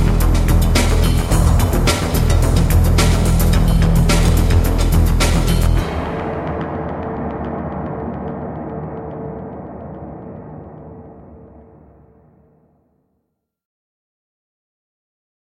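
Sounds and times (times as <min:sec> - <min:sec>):
instrumental crime background music: 0:00.0 - 0:12.7.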